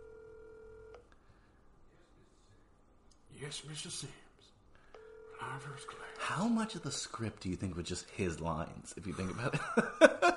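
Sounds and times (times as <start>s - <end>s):
telephone ringback tone on an unanswered call: 0.0s - 1.0s, 5.0s - 6.8s
speech: 3.4s - 4.2s, 5.4s - 10.3s.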